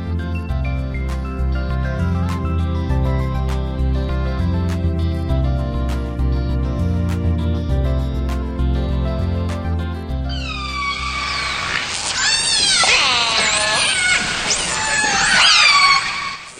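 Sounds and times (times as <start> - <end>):
soft music: 0.0 - 11.3
wild orcas off Washington calling, recorded by the Orca Network: 10.3 - 16.5.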